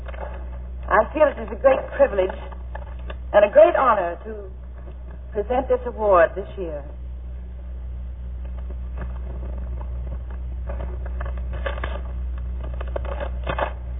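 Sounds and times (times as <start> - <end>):
constant low hum: 0.0 - 13.9
speech: 1.0 - 2.5, 3.3 - 4.6, 5.3 - 7.0
paper envelope torn open at an award ceremony: 9.0 - 13.8.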